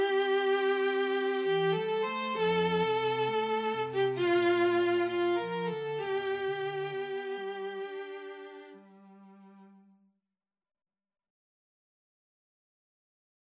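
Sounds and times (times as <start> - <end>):
string duo playing an Indian song: 0.0 - 9.9.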